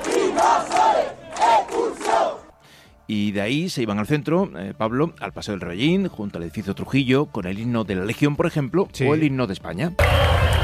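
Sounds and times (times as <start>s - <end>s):
crowd chanting protest slogans in unison: 0.0s - 2.5s
speech: 3.1s - 10.6s.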